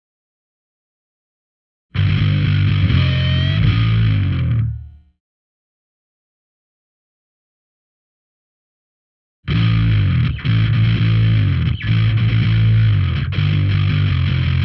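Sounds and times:
bass: 0:01.9 - 0:05.2, 0:09.5 - 0:14.6.

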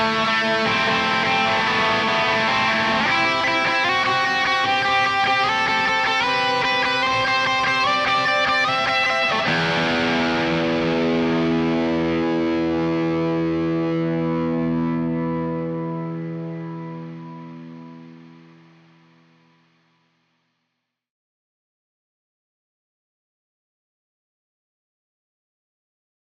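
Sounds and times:
guitar in C: 0:00.0 - 0:20.4.

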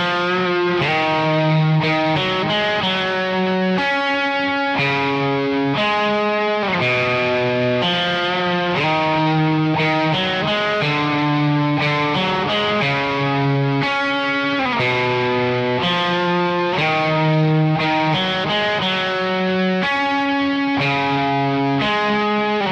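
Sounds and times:
bass guitar: 0:00.0 - 0:22.7.

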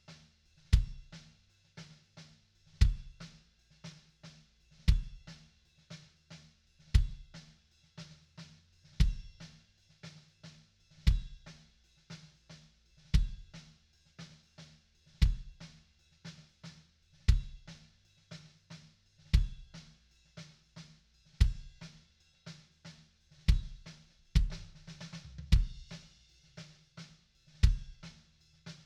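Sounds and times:
kick drum: 0:00.7 - 0:01.2, 0:02.8 - 0:03.2, 0:04.9 - 0:05.2, 0:06.9 - 0:07.3, 0:09.0 - 0:09.4, 0:11.1 - 0:11.4, 0:13.2 - 0:13.5, 0:15.2 - 0:15.6, 0:17.3 - 0:17.8, 0:19.3 - 0:19.7, 0:21.4 - 0:21.8, 0:23.5 - 0:26.0, 0:27.6 - 0:28.1.

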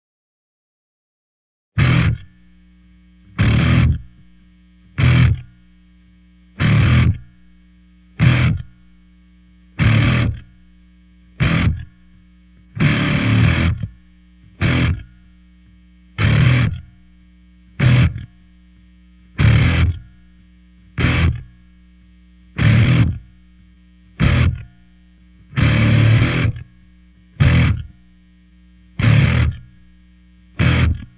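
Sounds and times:
bass: 0:01.8 - 0:05.8, 0:06.4 - 0:07.6, 0:08.2 - 0:09.1, 0:09.7 - 0:15.4, 0:16.1 - 0:18.6, 0:19.2 - 0:21.8, 0:22.5 - 0:28.2, 0:28.9 - 0:31.1.

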